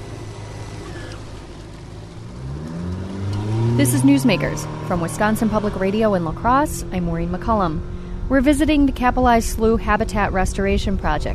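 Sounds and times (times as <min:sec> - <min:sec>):
rushing water: 0:00.0 - 0:05.9
motorboat engine accelerating up onto plane: 0:00.0 - 0:11.3
speech: 0:03.8 - 0:11.3.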